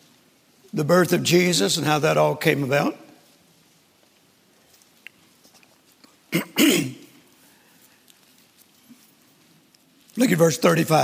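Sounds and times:
speech: 0.7s - 3.0s, 10.3s - 11.0s
man clearing his throat during a church sermon: 6.3s - 7.2s.

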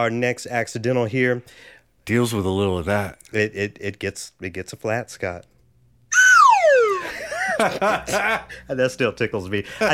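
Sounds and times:
speech: 0.0s - 5.5s, 7.6s - 9.9s
whistle in background music: 6.1s - 7.1s
laughter: 7.0s - 8.6s, 9.6s - 9.9s.

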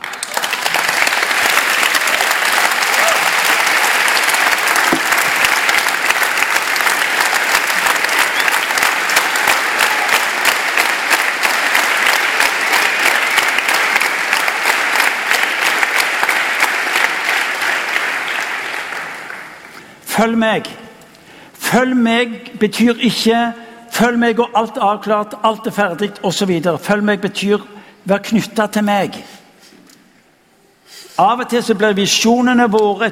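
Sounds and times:
audience applause: 0.0s - 19.9s
speech: 20.2s - 20.8s, 21.7s - 29.3s, 31.2s - 33.0s.

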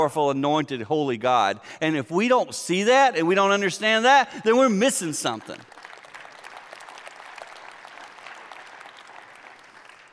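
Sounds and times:
speech: 0.0s - 5.8s
scattered half-hearted audience applause: 5.5s - 10.1s.

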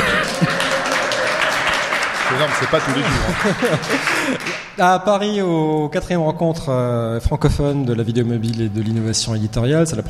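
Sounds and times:
crowd cheering and whooping: 0.0s - 4.1s
laughter: 0.0s - 4.6s
live audience applause: 0.0s - 4.8s
speech: 2.4s - 10.0s.

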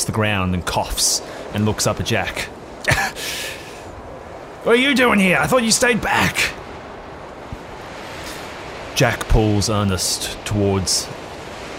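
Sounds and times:
speech: 0.0s - 3.5s, 4.6s - 6.6s, 9.0s - 11.3s
howling storm winds: 0.0s - 11.7s.

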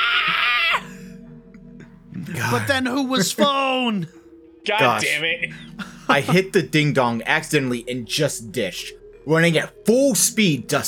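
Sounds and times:
woman's blood-curdling scream sound effect: 0.0s - 0.9s
speech: 2.4s - 10.8s.

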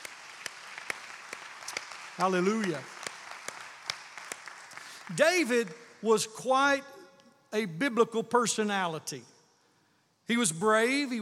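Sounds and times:
audience clapping: 0.0s - 6.1s
speech: 2.2s - 3.0s, 5.1s - 6.9s, 7.5s - 9.3s, 10.3s - 11.2s.

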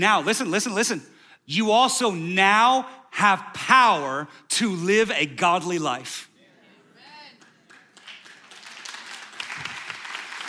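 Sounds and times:
speech: 0.0s - 6.3s
audience applause: 7.4s - 10.4s.

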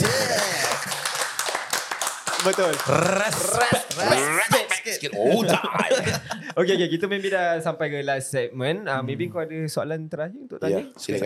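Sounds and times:
laughter: 0.0s - 1.2s, 2.7s - 7.4s
audience applause: 0.0s - 4.4s
speech: 2.4s - 11.2s.

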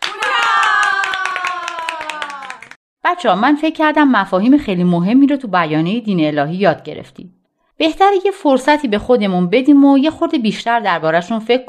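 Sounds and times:
crowd applause: 0.0s - 2.8s
crowd cheering: 0.0s - 2.8s
speech: 3.1s - 11.6s.

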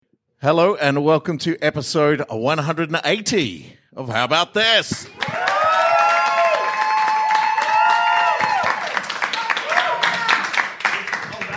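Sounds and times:
speech: 0.4s - 5.3s
live audience cheering with whoops and whistling shouts: 5.0s - 11.5s.

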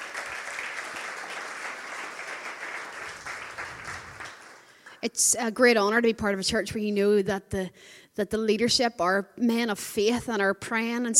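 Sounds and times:
audience applause: 0.0s - 5.0s
speech: 5.0s - 11.1s.

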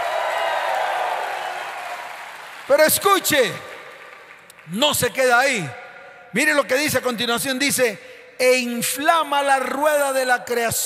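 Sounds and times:
audience applause: 0.0s - 4.6s
speech: 2.7s - 3.7s, 4.7s - 10.8s.

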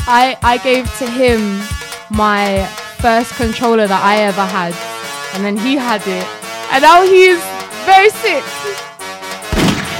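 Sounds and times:
speech: 0.1s - 8.8s
gunshot sound effect: 9.5s - 9.9s.

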